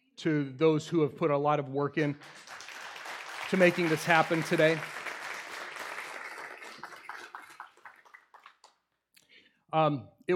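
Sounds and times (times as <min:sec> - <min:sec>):
speech: 0:00.2 - 0:02.6, 0:03.5 - 0:05.0, 0:09.7 - 0:10.3
audience applause: 0:02.2 - 0:08.7.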